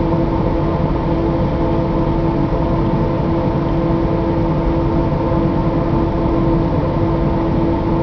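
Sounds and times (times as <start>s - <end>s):
fan: 0.0s - 8.0s.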